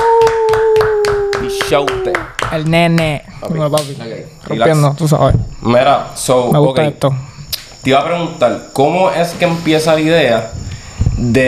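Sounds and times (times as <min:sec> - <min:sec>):
person whooping: 0:00.0 - 0:02.4
hands clapping: 0:00.0 - 0:04.0
speech: 0:01.7 - 0:11.4.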